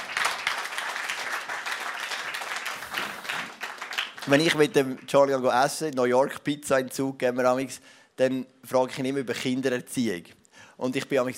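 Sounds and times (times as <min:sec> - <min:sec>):
audience applause: 0:00.0 - 0:04.7
speech: 0:04.2 - 0:11.3.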